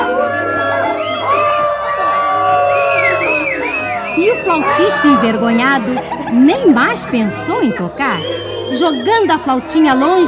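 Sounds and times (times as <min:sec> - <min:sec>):
children booing: 0:00.0 - 0:10.2
laughter: 0:00.0 - 0:10.2
speech: 0:04.8 - 0:10.2.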